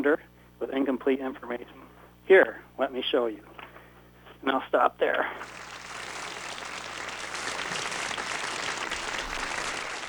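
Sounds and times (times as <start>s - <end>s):
speech: 0.0s - 3.5s, 4.4s - 5.7s
studio audience applause sound effect: 5.4s - 10.0s.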